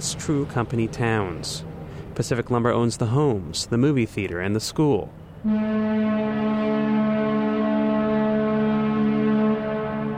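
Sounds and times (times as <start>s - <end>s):
speech: 0.0s - 6.9s
town whistle blowing: 5.4s - 10.1s.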